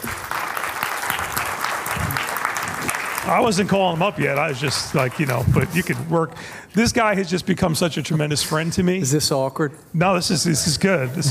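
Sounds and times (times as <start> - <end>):
audience applauding at a morning church gathering: 0.0 - 6.4
speech: 3.2 - 11.2.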